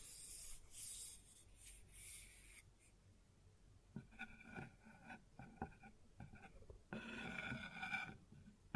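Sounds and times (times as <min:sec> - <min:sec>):
scrapes, rubs and taps on a wooden surface: 0:04.0 - 0:08.7.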